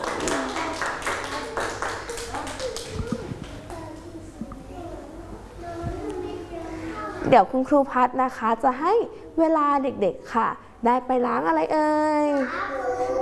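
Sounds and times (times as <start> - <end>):
children clapping hands: 0.0 - 4.1
children chattering: 0.1 - 7.3, 12.3 - 13.2
speech: 7.3 - 12.8.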